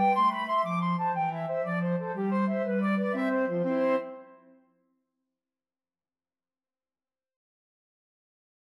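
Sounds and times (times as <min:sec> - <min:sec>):
two flutes playing an Irish jig medley: 0:00.0 - 0:04.4.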